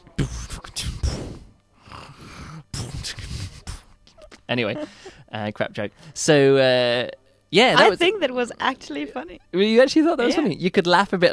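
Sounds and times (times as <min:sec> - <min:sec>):
voice mimicking snoring beatbox-style: 0:00.2 - 0:03.9
speech: 0:04.5 - 0:11.3.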